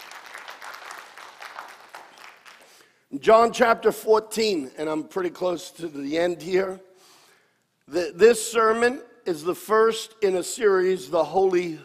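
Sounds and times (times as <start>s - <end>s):
audience clapping: 0.0s - 3.0s
speech: 3.1s - 6.9s, 7.9s - 11.8s.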